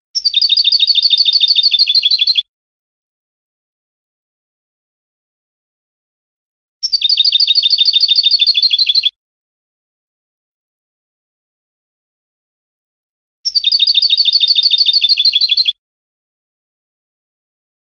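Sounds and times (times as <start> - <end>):
European goldfinch song: 0.2 - 2.5, 6.8 - 9.2, 13.5 - 15.8.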